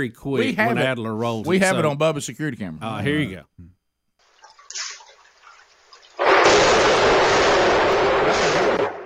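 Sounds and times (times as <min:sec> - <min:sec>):
speech: 0:00.0 - 0:03.7
rain hiss: 0:04.2 - 0:08.9
thunder from nearby lightning strike: 0:06.2 - 0:09.0.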